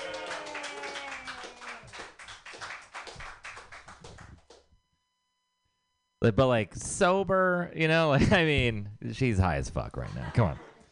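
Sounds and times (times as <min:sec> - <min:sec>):
open-mic audience whooping: 0:00.0 - 0:02.1
open-mic audience clapping for a comedian: 0:00.0 - 0:04.7
speech: 0:06.2 - 0:10.7.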